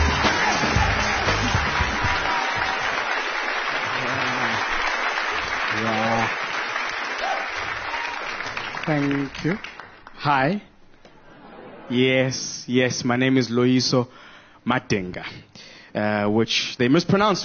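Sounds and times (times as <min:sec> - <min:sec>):
studio audience applause: 0:00.0 - 0:10.6
speech: 0:08.9 - 0:10.7, 0:11.9 - 0:17.4.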